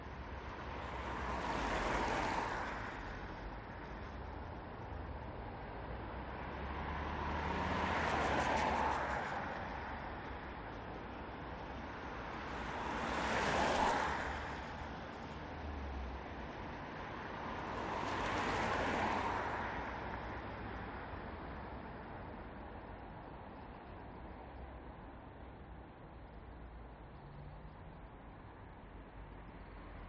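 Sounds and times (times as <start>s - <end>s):
urban traffic on wet road in Newcastle upon Tyne UK: 0.3s - 4.5s, 5.9s - 22.4s.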